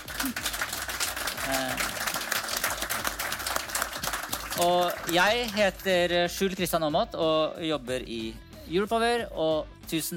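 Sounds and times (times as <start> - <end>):
audience applause: 0.0 - 5.6
speech: 4.6 - 10.1.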